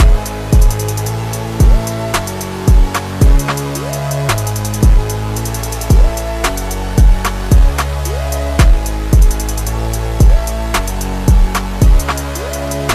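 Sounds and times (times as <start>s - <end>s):
slowed instrumental music with reverb: 0.0s - 12.9s.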